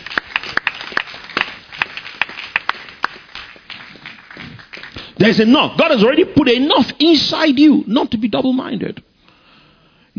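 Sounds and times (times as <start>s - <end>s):
rhythmic audience clapping: 0.0s - 5.5s
faint noise: 0.0s - 10.1s
speech: 5.2s - 9.1s.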